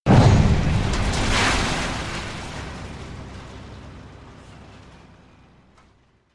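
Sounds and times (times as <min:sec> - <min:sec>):
debris: 0:00.1 - 0:06.3.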